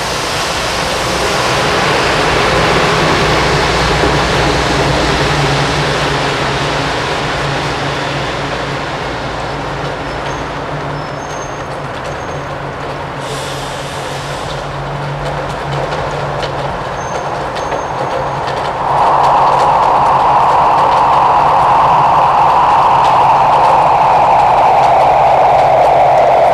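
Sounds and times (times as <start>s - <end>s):
rain: 0.0s - 26.5s.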